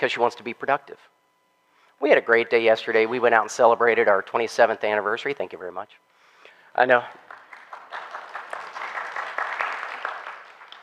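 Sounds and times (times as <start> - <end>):
speech: 0.0 - 1.2, 2.0 - 6.1, 6.8 - 7.3
thin scattered applause from a small crowd: 7.2 - 10.8.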